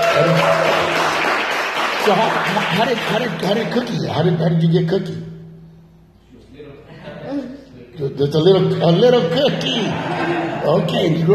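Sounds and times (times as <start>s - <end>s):
tonal hum or cheer: 0.0s - 1.3s
audience applause: 0.0s - 3.6s
speech: 0.2s - 0.6s, 2.0s - 5.3s, 8.0s - 11.3s
laughter: 9.2s - 11.3s.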